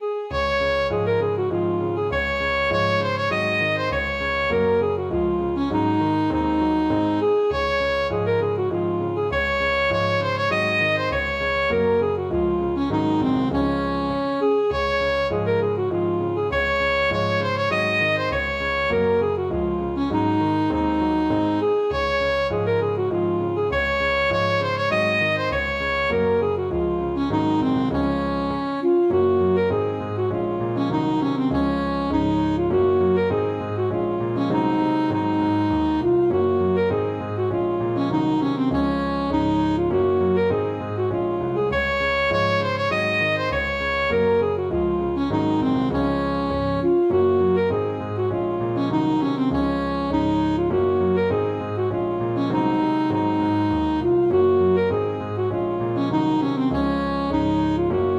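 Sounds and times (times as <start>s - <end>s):
alto saxophone playing polska: 0.0s - 58.1s.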